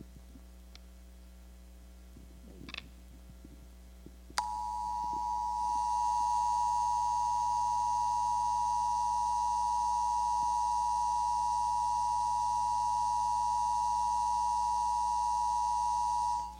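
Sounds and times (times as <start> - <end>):
emergency storm warning alarm tone: 4.4 - 16.5.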